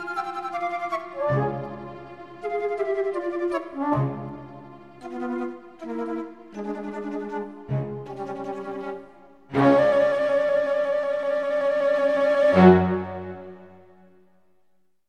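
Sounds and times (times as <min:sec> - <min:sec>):
alto flute: 0:00.0 - 0:14.0.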